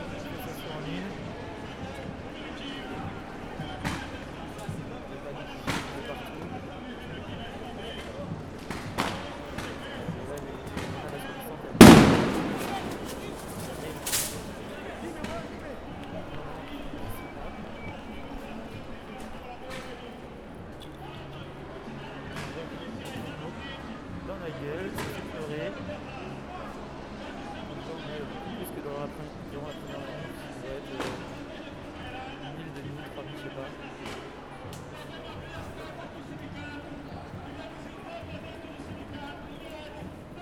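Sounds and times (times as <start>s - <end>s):
protest crowd ambience: 0.0s - 40.4s.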